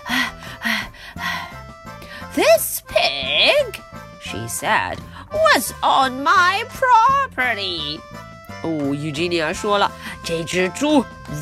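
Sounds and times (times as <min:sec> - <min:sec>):
loud rapid breathing of a woman: 0:00.0 - 0:02.3, 0:09.9 - 0:10.3
speech: 0:04.5 - 0:11.4.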